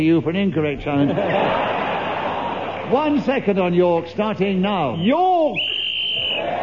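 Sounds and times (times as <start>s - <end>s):
speech: 0.0s - 1.9s, 2.9s - 5.7s
laughter: 0.9s - 3.2s
whistle blowing to end the round: 4.9s - 6.5s.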